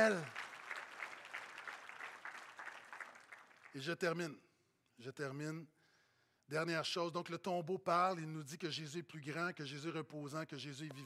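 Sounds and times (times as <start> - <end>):
speech: 0.0 - 0.4, 3.7 - 4.4, 5.0 - 5.8, 6.5 - 11.0
audience applause: 0.0 - 3.8.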